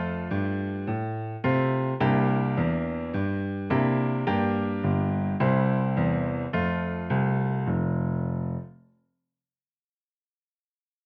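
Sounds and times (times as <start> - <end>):
jazz piano part for alto saxophone studies: 0.0 - 8.7.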